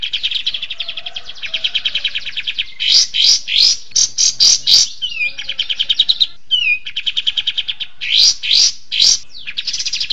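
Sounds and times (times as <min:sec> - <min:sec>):
songbird singing: 0:00.0 - 0:10.1.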